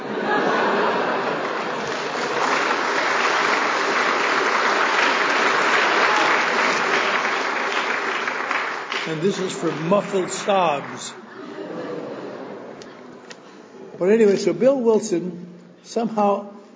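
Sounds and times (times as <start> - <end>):
laughter: 0.0 - 2.6, 10.2 - 13.9
audience applause: 0.0 - 11.4
speech: 9.2 - 11.2, 14.0 - 16.6.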